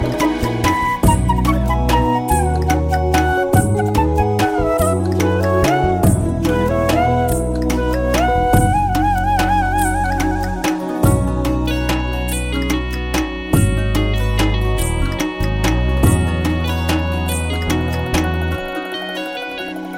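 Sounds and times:
dhak drum music: 0:00.0 - 0:19.9.

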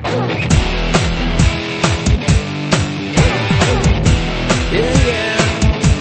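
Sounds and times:
music beat: 0:00.3 - 0:05.9.

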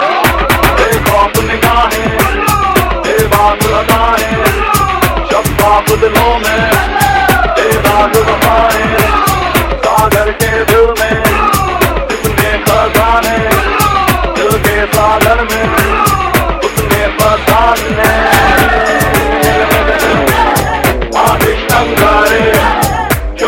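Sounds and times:
dhol drum music mix: 0:00.1 - 0:23.4.

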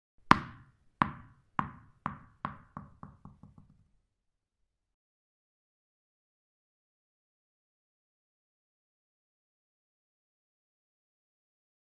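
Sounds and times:
tennis ball: 0:00.2 - 0:03.8.

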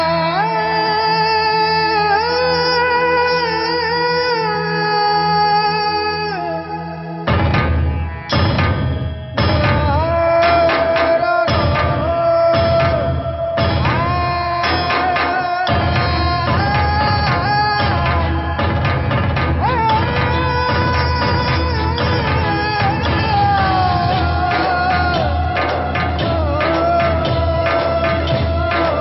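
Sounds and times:
background music: 0:00.0 - 0:29.0.

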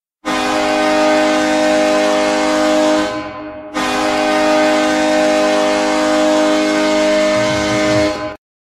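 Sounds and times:
goal horn: 0:00.2 - 0:08.4.

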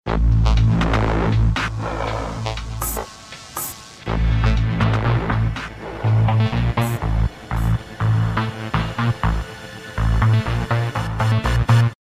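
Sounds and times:
bass: 0:00.0 - 0:03.1, 0:04.0 - 0:11.9.

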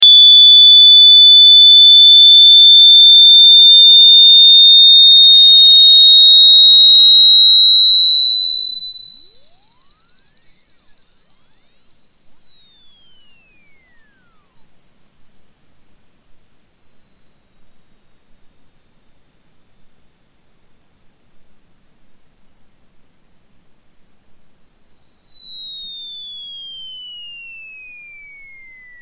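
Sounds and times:
very high-pitched tone: 0:00.0 - 0:29.0.

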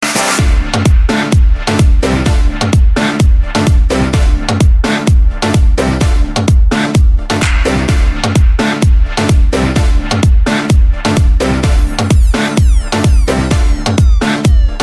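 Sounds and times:
cool music: 0:00.0 - 0:14.8.

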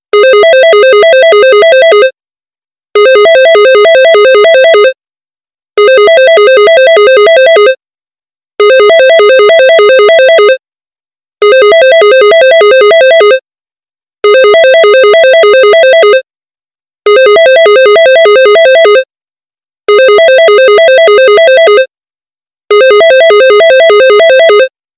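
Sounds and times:
office phone ringing: 0:00.2 - 0:02.2, 0:03.0 - 0:05.0, 0:05.8 - 0:07.8, 0:08.6 - 0:10.6, 0:11.4 - 0:13.4, 0:14.2 - 0:16.2, 0:17.1 - 0:19.1, 0:19.9 - 0:21.9, 0:22.7 - 0:24.7.

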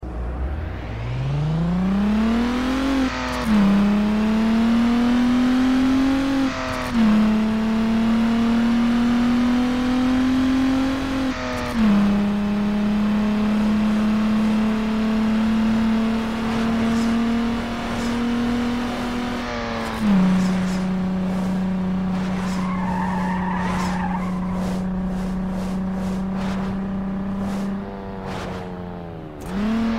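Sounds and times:
car engine: 0:00.0 - 0:29.9.

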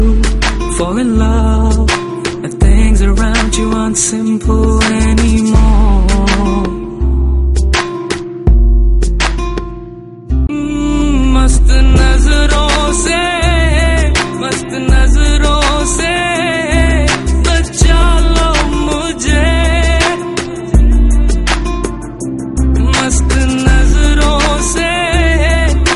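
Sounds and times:
Punjabi music: 0:00.0 - 0:25.9.

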